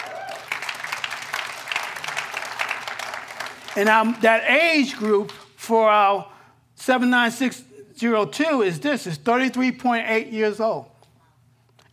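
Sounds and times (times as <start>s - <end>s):
audience clapping: 0.0s - 5.6s
speech: 3.8s - 10.9s.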